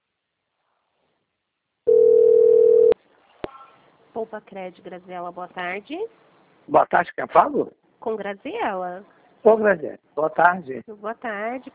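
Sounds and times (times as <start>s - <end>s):
steady pure electronic telephone tone: 1.9s - 3.0s
speech: 4.2s - 11.7s.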